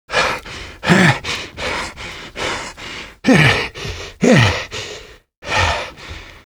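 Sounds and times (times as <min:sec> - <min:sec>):
fish out of breath gasping: 0:00.1 - 0:06.4.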